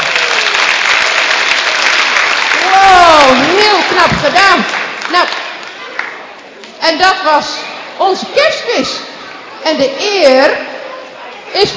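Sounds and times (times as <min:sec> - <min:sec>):
audience applause: 0:00.0 - 0:06.4
speech: 0:03.9 - 0:05.4, 0:06.9 - 0:09.0, 0:09.6 - 0:10.7, 0:11.5 - 0:11.7.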